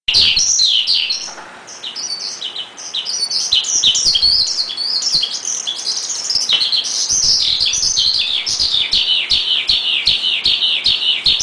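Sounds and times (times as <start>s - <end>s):
Asian pied starling singing: 0.1s - 11.4s.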